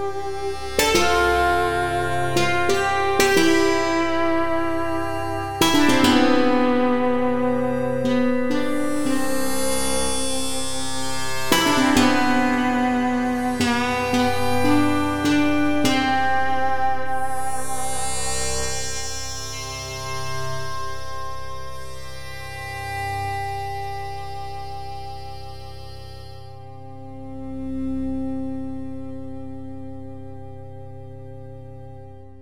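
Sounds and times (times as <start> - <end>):
eastern style music: 0.0 - 32.4.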